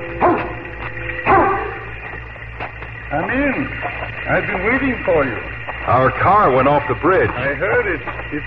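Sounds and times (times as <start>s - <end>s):
dog barking: 0.2s - 0.6s, 1.3s - 1.9s
speech: 4.3s - 8.4s.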